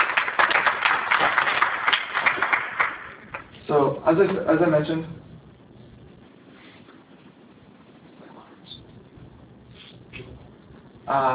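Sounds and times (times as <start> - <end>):
crowd round of applause: 0.0 - 3.6
speech: 3.7 - 5.2, 11.1 - 11.3.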